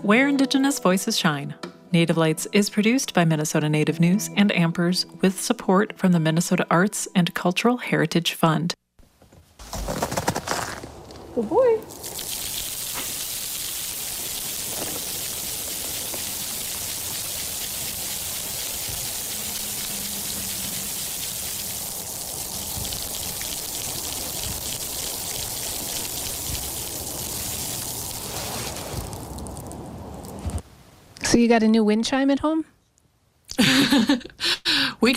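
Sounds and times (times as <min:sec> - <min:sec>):
speech: 0:00.0 - 0:08.8, 0:11.4 - 0:12.0, 0:31.4 - 0:32.8, 0:33.6 - 0:35.1
ice-covered leatherwood shrub being shaken: 0:28.0 - 0:30.6.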